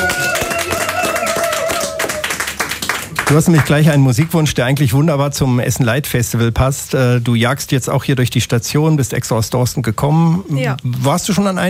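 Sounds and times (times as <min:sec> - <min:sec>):
audience applause: 0:00.0 - 0:04.0
speech: 0:03.3 - 0:11.6.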